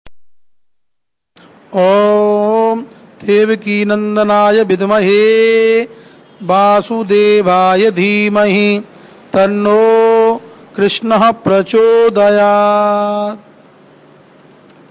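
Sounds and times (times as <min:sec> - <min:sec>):
person chanting a Krishna mantra: 0:01.7 - 0:13.5.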